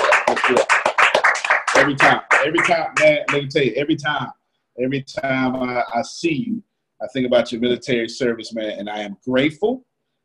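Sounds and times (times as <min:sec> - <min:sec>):
audience clapping: 0:00.0 - 0:03.6
speech: 0:00.5 - 0:00.8, 0:01.8 - 0:09.9.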